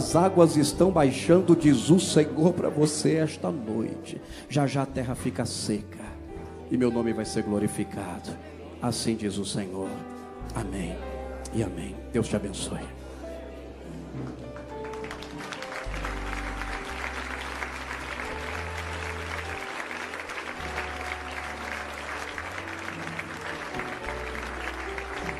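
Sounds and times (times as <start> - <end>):
sustained low keyboard chords: 0.0 - 25.3
speech: 0.1 - 13.0
audience applauding: 14.3 - 25.3.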